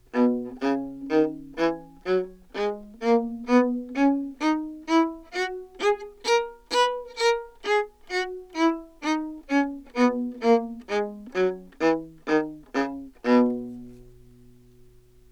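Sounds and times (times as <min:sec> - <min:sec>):
baroque viola playing a scale with heel lift: 0:00.0 - 0:15.2.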